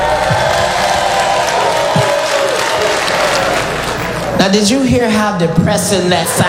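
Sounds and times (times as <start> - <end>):
audience clapping: 0.0 - 4.4
faint crowd murmur: 0.0 - 4.4
speech: 4.5 - 6.4.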